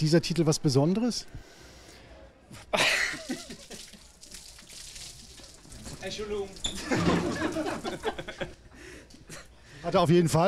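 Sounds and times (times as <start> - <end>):
speech: 0.0 - 1.6, 2.5 - 3.6, 6.0 - 8.6, 9.8 - 10.4
laughter: 2.6 - 4.2, 6.8 - 9.5
beer poured over a handball player during a post-match interview: 2.9 - 8.6.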